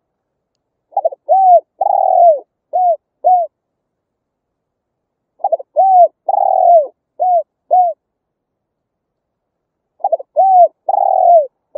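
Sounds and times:
spotted dove hooting: 0.9s - 3.6s, 5.4s - 8.0s, 10.0s - 11.7s.

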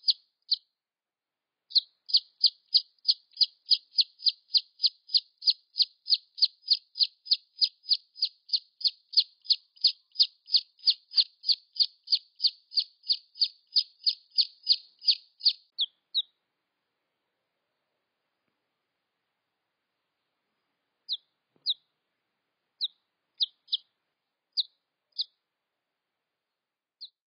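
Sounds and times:
red junglefowl chick peeps: 0.0s - 0.6s, 1.7s - 16.4s, 21.1s - 21.9s, 22.8s - 23.9s, 24.6s - 25.4s.

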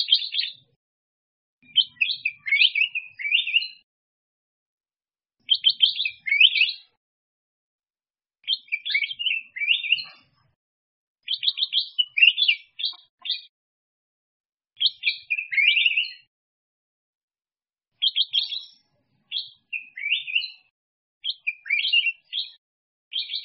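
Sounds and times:
black-crested bulbul singing: 0.0s - 0.7s, 1.6s - 3.9s, 5.4s - 7.0s, 8.4s - 10.2s, 11.2s - 13.5s, 14.8s - 16.3s, 18.0s - 23.4s.

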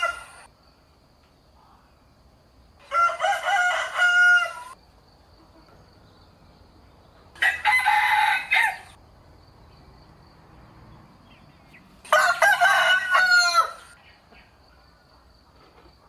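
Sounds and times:
rooster crowing: 0.0s - 0.5s, 2.8s - 4.8s, 7.4s - 9.0s, 12.0s - 14.0s.

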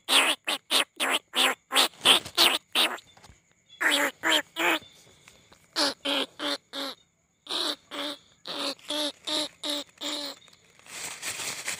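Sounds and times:
rice-field rat squealing: 0.0s - 3.0s, 5.8s - 10.4s.

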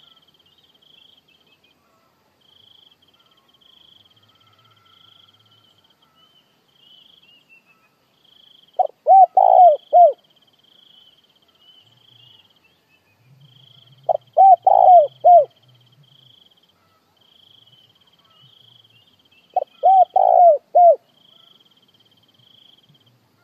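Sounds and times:
spotted dove cooing: 8.8s - 10.2s, 14.0s - 15.6s, 19.5s - 21.5s.

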